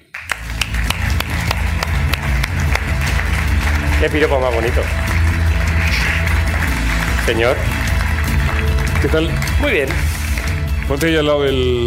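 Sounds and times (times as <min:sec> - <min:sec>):
audience applause: 0:00.0 - 0:11.2
speech: 0:04.0 - 0:05.2, 0:07.2 - 0:07.8, 0:09.0 - 0:10.1, 0:10.9 - 0:11.8.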